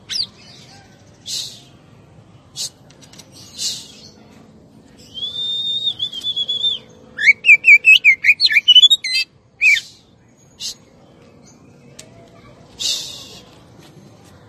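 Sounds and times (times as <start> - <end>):
Oriental magpie-robin singing: 0.0 - 1.8, 4.9 - 13.5.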